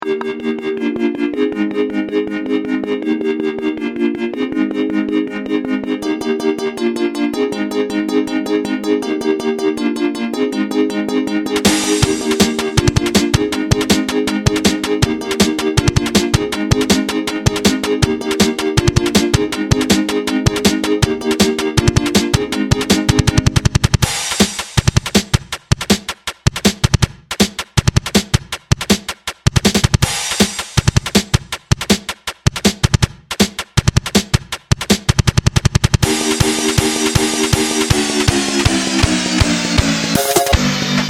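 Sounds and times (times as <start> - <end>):
instrumental music: 0.0 - 35.1, 35.9 - 41.0.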